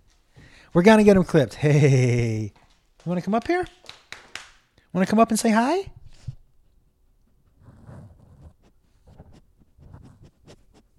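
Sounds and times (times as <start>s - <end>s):
speech: 0.7s - 4.0s, 4.9s - 6.0s
dog sniffing: 7.6s - 10.9s.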